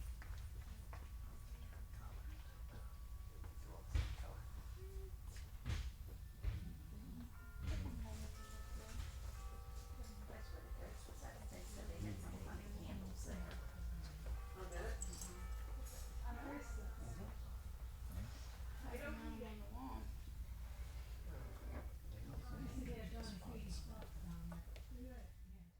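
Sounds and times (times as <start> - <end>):
retail background noise: 0.0 - 25.7.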